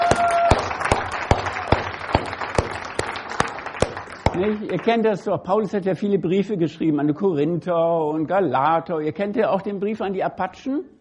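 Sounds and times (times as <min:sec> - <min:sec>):
audience applause: 0:00.0 - 0:05.2
speech: 0:04.4 - 0:11.0.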